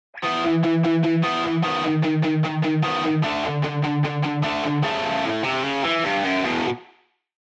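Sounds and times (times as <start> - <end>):
guitar pattern: 0.1 - 6.9.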